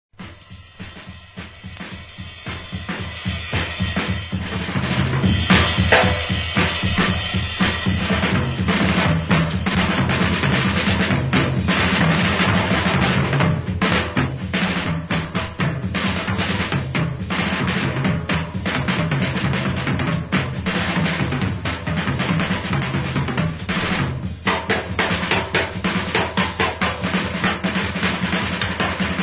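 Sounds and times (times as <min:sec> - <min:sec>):
drum rip: 0:00.1 - 0:29.2.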